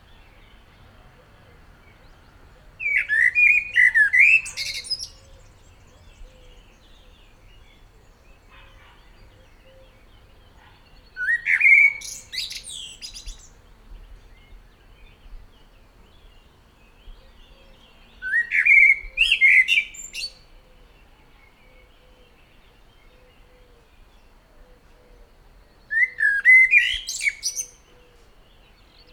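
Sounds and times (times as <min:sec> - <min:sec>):
common blackbird song: 0:00.0 - 0:29.1.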